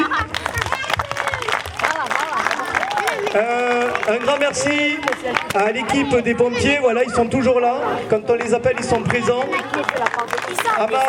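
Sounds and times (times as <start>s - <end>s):
crowd clapping: 0.0s - 6.0s, 8.3s - 11.0s
crowd voices and cheers: 0.0s - 11.0s
speech: 3.4s - 11.0s.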